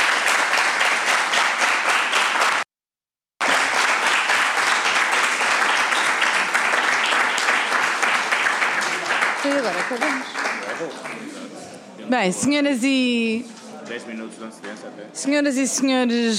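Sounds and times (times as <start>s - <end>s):
room of people applauding in a parliamentary committee: 0.0s - 2.7s, 3.4s - 11.6s
speech: 9.8s - 11.4s, 12.1s - 16.3s.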